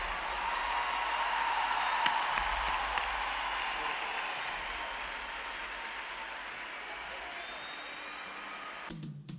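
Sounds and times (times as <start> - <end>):
loud applause: 0.0 - 9.1.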